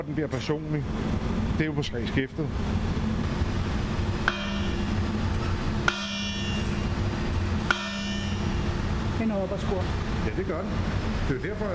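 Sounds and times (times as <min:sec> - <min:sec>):
speech: 0:00.0 - 0:03.0, 0:09.2 - 0:11.7
low hum: 0:02.6 - 0:11.3
blacksmith hammer striking metal on anvil: 0:04.2 - 0:09.2.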